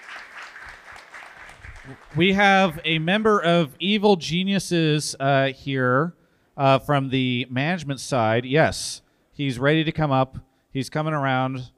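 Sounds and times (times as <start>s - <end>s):
audience applause: 0.0s - 2.6s
speech: 1.8s - 11.7s.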